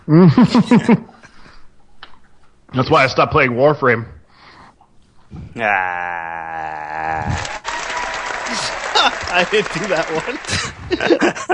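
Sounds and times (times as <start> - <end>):
speech: 0.1 - 1.1, 2.7 - 4.2, 5.3 - 7.5, 9.0 - 11.5
laughter: 0.1 - 1.2, 5.6 - 11.5
applause: 7.2 - 11.4.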